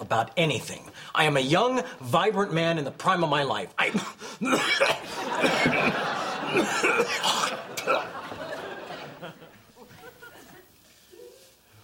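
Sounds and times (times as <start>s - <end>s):
speech: 0.1s - 8.2s
man giving a wet phlegmy cough: 3.9s - 8.2s
people talking and chuckling: 4.8s - 11.7s.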